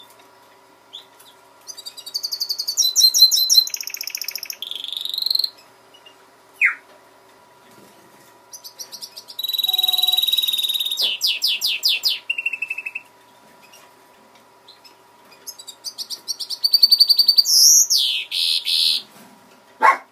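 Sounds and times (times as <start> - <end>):
greenfinch mule singing: 0.9 - 6.8, 8.5 - 13.1, 14.7 - 19.1.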